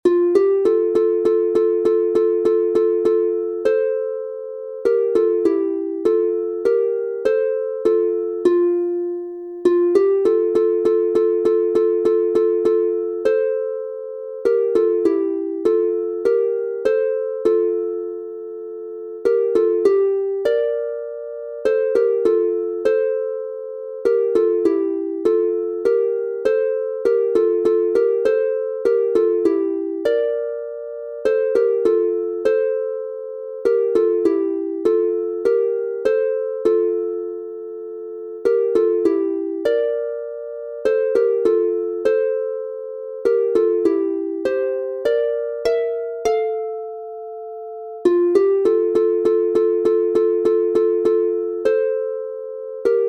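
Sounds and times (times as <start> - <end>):
harp playing in F major: 0.0 - 53.0.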